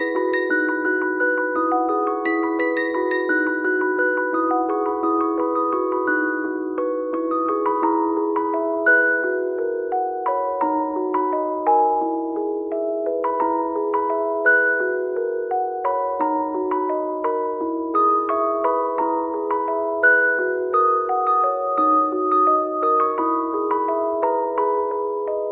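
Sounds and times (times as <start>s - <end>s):
ringtone: 0.0s - 25.4s.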